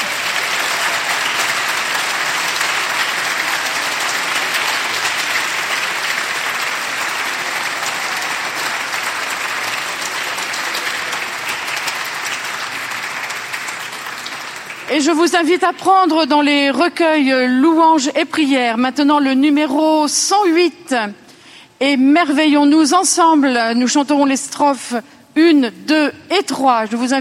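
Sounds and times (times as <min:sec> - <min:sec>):
audience applause: 0:00.0 - 0:15.0
speech: 0:15.0 - 0:21.2, 0:21.8 - 0:27.1.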